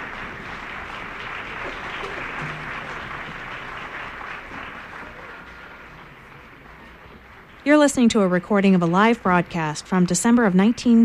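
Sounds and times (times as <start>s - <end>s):
audience applause after concert band performance: 0.0s - 7.6s
speech: 7.6s - 11.0s.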